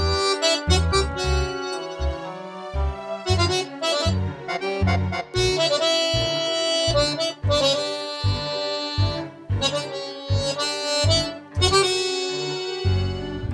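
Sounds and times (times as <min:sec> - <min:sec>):
tango nuevo music: 0:00.0 - 0:13.5.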